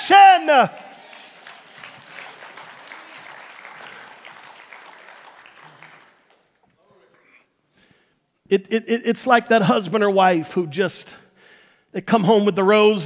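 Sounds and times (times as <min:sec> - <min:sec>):
speech: 0:00.1 - 0:00.8, 0:08.5 - 0:11.2, 0:11.9 - 0:13.0
audience applause: 0:00.1 - 0:06.7.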